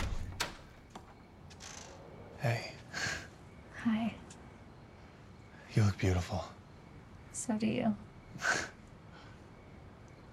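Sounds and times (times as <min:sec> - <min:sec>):
door opening: 0:00.0 - 0:02.2
speech: 0:02.4 - 0:02.8, 0:03.8 - 0:04.2, 0:06.0 - 0:06.6, 0:07.4 - 0:08.7.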